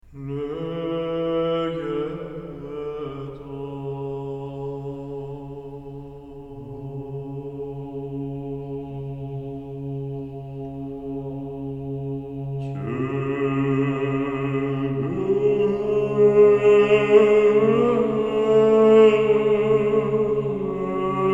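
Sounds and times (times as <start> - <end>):
ensemble playing old church music: 0.0 - 21.3.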